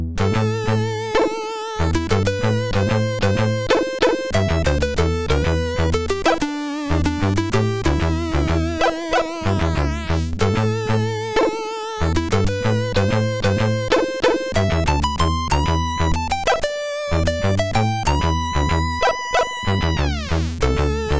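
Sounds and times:
lazy SID chip tune on MOS 6581R4: 0.2 - 21.1.

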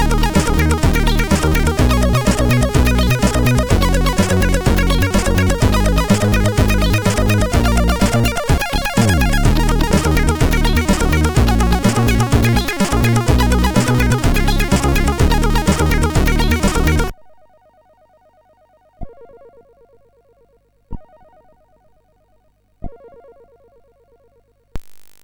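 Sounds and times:
chiptune game over music on a MOS6581R4 SID chip: 0.0 - 17.1.

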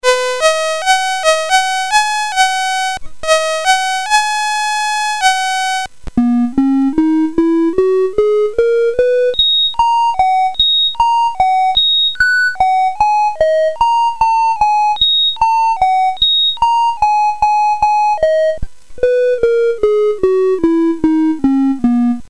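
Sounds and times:
CSG8580R5 sound chip: 0.0 - 22.2.

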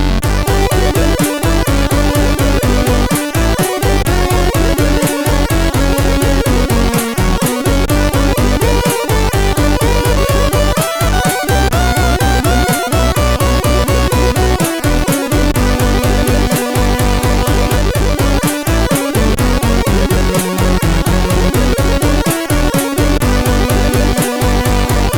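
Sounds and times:
up-tempo rock remix on CSG8580R5: 0.2 - 25.1.

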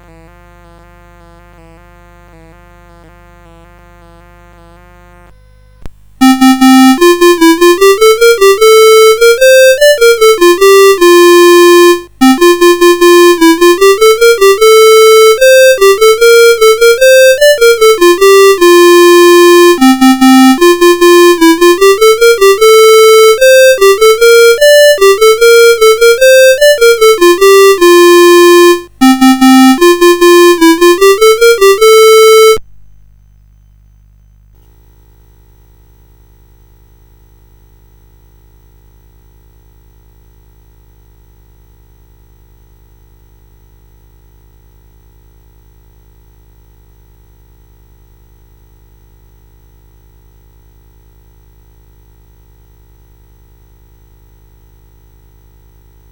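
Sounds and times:
Christmas carol on CSG8580 chip: 6.0 - 32.6.

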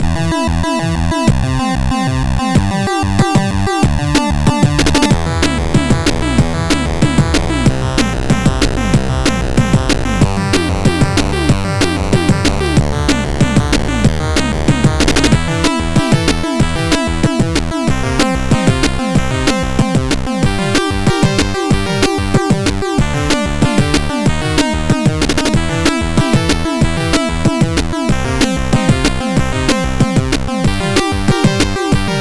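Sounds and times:
SID chip MOS6581R4 music: 0.0 - 32.1.

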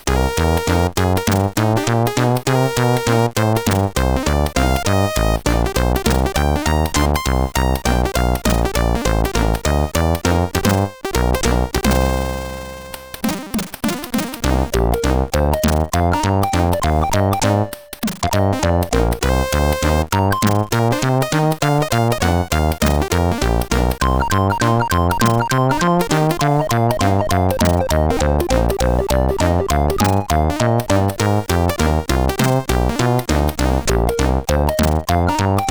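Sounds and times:
jazz music: 0.1 - 13.5, 14.3 - 35.6.

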